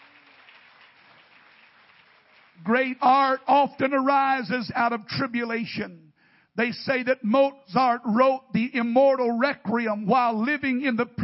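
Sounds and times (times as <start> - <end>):
audience clapping: 0.0 - 3.4
speech: 2.6 - 11.2.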